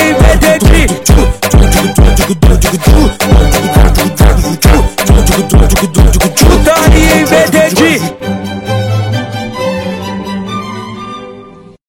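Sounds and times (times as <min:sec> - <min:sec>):
phonk funk music: 0:00.0 - 0:08.4.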